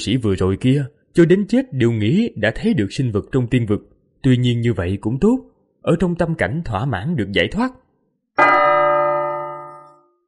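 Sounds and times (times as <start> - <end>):
speech: 0.0 - 7.8
large bell tolling slowly: 8.4 - 10.2.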